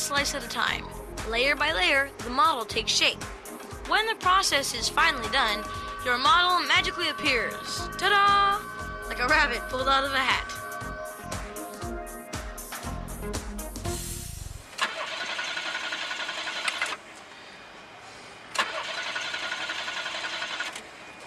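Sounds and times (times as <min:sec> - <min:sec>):
speech: 0:00.1 - 0:10.6
car engine cranking but failing to start: 0:14.7 - 0:17.0, 0:18.5 - 0:21.2.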